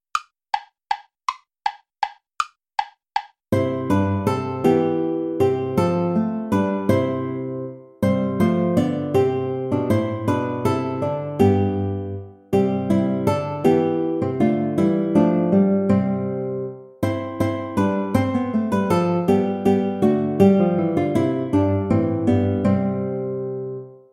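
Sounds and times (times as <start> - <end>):
play-along backing track without guitar: 0.0 - 24.1.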